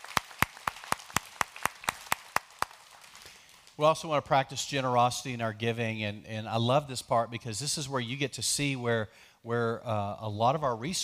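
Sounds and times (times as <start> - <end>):
audience clapping: 0.0 - 3.8
speech: 3.8 - 11.0.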